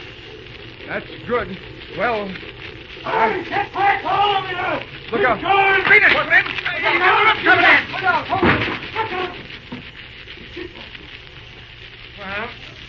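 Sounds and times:
building on fire crackling and roaring: 0:00.0 - 0:12.8
speech: 0:00.9 - 0:09.6
people shouting: 0:03.0 - 0:09.4.

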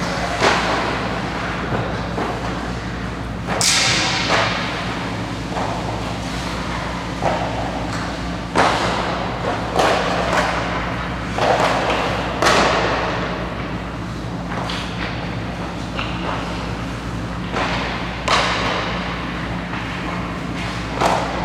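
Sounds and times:
hockey pucks and sticks striking: 0:00.0 - 0:13.9, 0:14.5 - 0:21.4.

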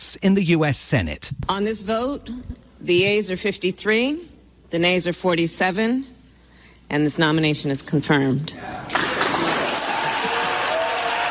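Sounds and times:
speech: 0:00.0 - 0:06.2, 0:06.9 - 0:09.2
sustained applause in senate chamber: 0:08.8 - 0:11.2.

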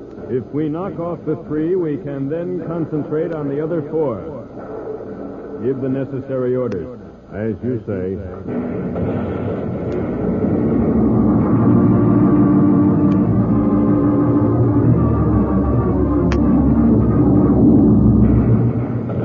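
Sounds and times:
speech: 0:00.3 - 0:04.6, 0:05.6 - 0:09.6
explosions rumbling in a tunnel: 0:08.5 - 0:19.2.

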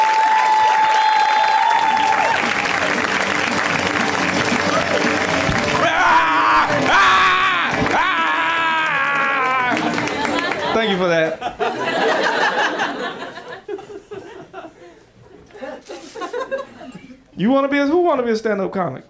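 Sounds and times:
audience applause and cheering: 0:00.0 - 0:11.2
laughter: 0:04.6 - 0:17.2
speech: 0:11.0 - 0:13.2, 0:17.4 - 0:19.0.

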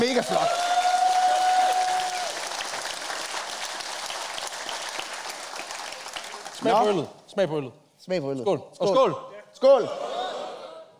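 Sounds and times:
crowd applauding: 0:00.0 - 0:06.8
speech: 0:00.1 - 0:00.6, 0:06.6 - 0:10.1.

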